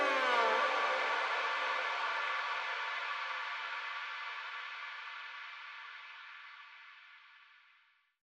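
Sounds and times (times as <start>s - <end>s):
ambient music: 0.0s - 3.6s.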